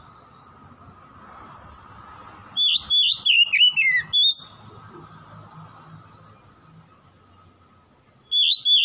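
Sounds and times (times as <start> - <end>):
Oriental magpie-robin song: 2.6 - 4.6, 8.2 - 8.8.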